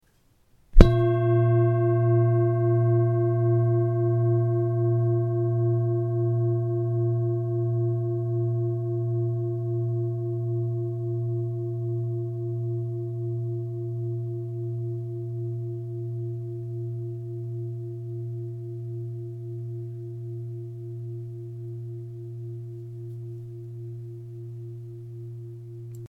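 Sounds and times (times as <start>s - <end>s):
singing bowl: 0.8s - 26.0s.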